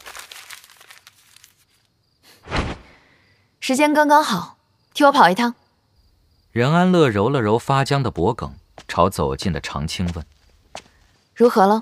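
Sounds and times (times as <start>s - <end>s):
drawing paper being torn and crumpled into a ball: 0.0s - 1.9s
speech: 3.7s - 5.6s, 6.6s - 10.4s, 11.4s - 11.7s.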